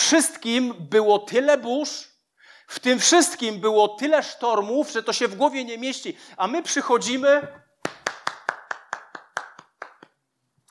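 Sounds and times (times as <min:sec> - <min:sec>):
speech: 0:00.1 - 0:02.1, 0:02.7 - 0:08.0
sharp hand claps: 0:07.8 - 0:10.2.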